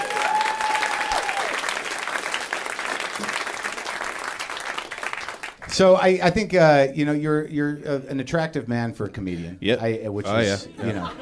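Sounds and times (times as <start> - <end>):
audience applause: 0.0 - 5.9
speech: 5.7 - 11.2
laughter: 10.4 - 11.2.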